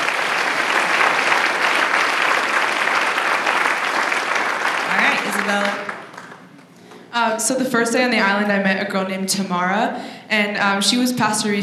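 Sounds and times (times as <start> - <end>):
audience round of applause: 0.0 - 7.1
speech: 5.5 - 5.9, 7.2 - 11.6.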